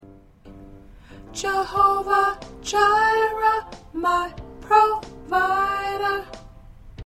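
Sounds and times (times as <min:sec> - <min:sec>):
soprano singing: 0:01.1 - 0:06.6.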